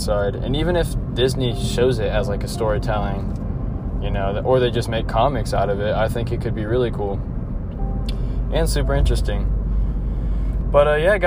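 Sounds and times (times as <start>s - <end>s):
speech: 0.0s - 3.4s, 4.0s - 7.3s, 8.5s - 9.6s, 10.7s - 11.2s
car road noise while driving: 0.0s - 11.2s.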